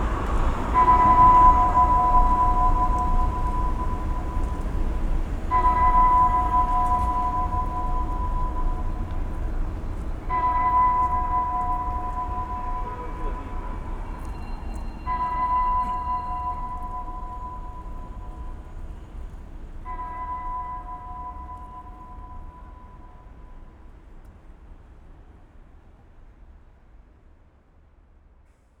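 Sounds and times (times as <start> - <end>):
bells ringing: 0.0 - 19.1, 19.9 - 23.2.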